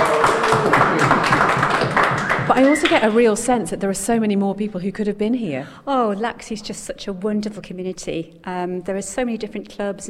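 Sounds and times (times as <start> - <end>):
crowd clapping: 0.0 - 3.4
speech: 2.6 - 10.0.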